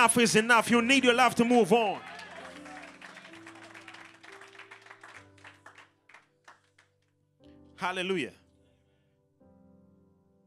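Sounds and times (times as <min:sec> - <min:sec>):
speech: 0:00.0 - 0:02.2, 0:07.8 - 0:08.4
crowd clapping: 0:00.6 - 0:07.1.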